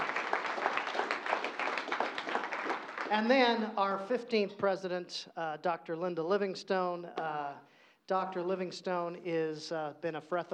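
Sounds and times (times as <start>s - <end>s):
audience applause for a performer: 0.0s - 3.3s
speech: 3.1s - 10.5s.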